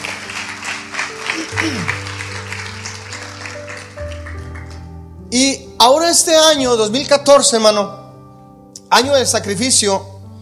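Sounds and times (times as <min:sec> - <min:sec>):
audience applause: 0:00.0 - 0:04.9
speech: 0:01.6 - 0:02.0, 0:05.3 - 0:08.0, 0:08.9 - 0:10.1.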